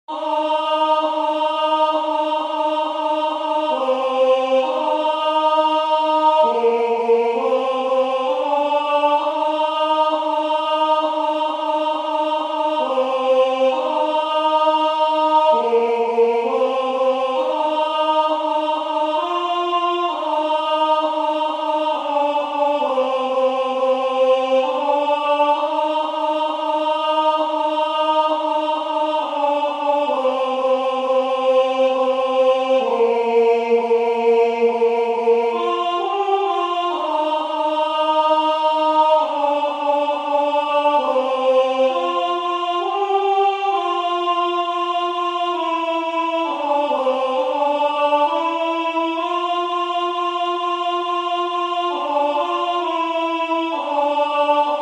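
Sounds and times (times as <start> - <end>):
tenor singing: 0.1 - 54.8.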